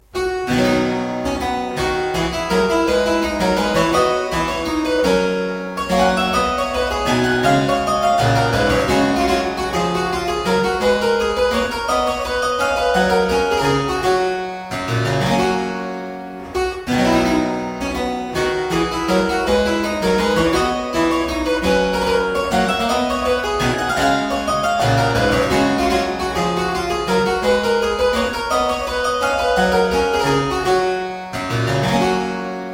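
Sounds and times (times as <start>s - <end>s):
baroque suite courante in C major: 0.0s - 32.7s.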